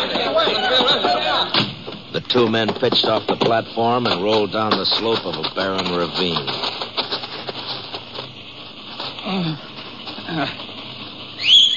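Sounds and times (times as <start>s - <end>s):
laughter: 0.0s - 1.5s
horses trotting: 0.0s - 11.0s
speech: 2.2s - 6.7s, 9.3s - 9.7s, 10.3s - 10.6s
whistle calling horses: 11.4s - 11.7s.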